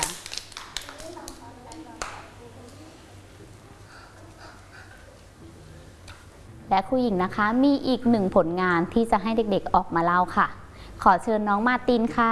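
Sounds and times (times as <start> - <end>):
children clapping: 0.0 - 2.3
speech: 6.7 - 12.2.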